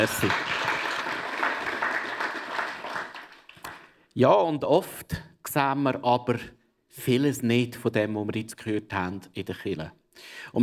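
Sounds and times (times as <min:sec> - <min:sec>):
speech: 0:00.0 - 0:00.5, 0:04.2 - 0:10.6
crowd applauding: 0:00.0 - 0:03.9.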